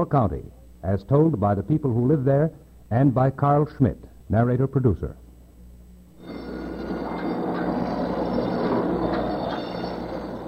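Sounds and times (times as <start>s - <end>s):
speech: 0.0s - 5.2s
gantry crane moving on rails: 6.2s - 10.4s
gantry crane warning bell: 6.2s - 10.4s.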